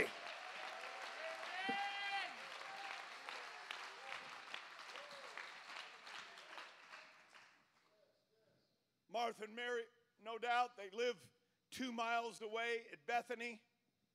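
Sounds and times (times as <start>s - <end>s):
audience clapping: 0.0s - 7.9s
audience shouting: 1.2s - 3.1s
speech: 9.3s - 13.7s.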